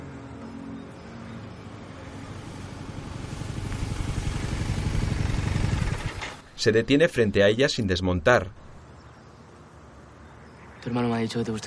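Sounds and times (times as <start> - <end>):
motorcycle engine arriving at an abandoned-looking race track: 1.9 - 6.5
speech: 6.6 - 8.6, 10.8 - 11.6.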